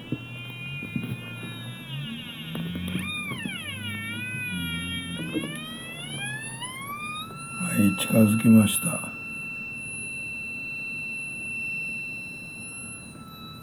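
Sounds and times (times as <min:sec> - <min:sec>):
bright wavering whistle-like tones: 0:00.0 - 0:13.6
low-frequency electrical hum near AC power outlet: 0:00.0 - 0:13.6
speech: 0:07.8 - 0:09.1.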